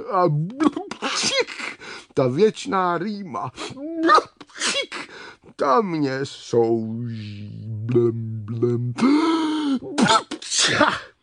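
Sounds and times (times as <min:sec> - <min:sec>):
speech: 0:00.0 - 0:04.3, 0:05.6 - 0:11.1
person acting out a loud sneeze with rising ahh: 0:00.4 - 0:01.6, 0:03.8 - 0:05.1, 0:09.0 - 0:11.1.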